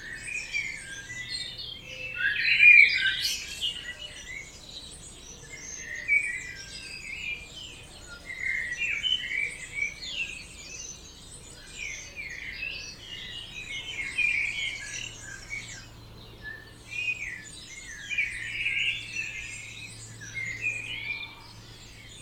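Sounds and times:
dawn chorus of birds: 0.0 - 22.1.

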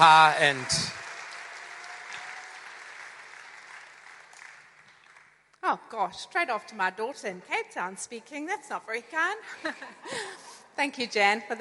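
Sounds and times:
speech: 0.0 - 1.0, 5.6 - 11.5
audience applause for a group called up at a gathering: 0.0 - 5.3.

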